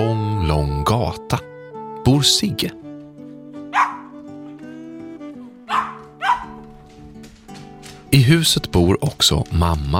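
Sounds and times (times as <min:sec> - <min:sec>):
speech: 0:00.0 - 0:01.5, 0:02.1 - 0:02.8, 0:08.1 - 0:09.9
dog barking: 0:03.7 - 0:04.2, 0:05.7 - 0:06.7.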